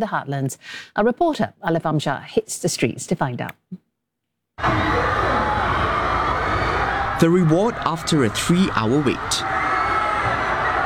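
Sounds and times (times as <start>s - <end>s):
speech: 0.0s - 3.8s, 4.6s - 5.2s, 7.2s - 9.6s
fans screaming and cheering: 4.6s - 10.8s.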